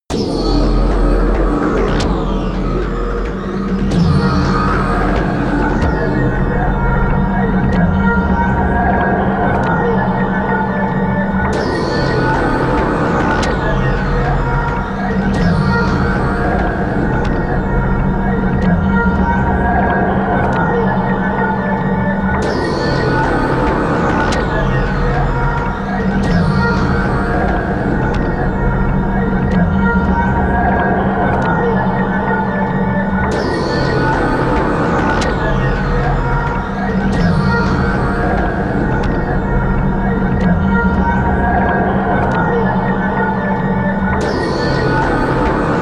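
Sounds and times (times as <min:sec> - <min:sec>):
drone sound: 0:00.1 - 0:45.7.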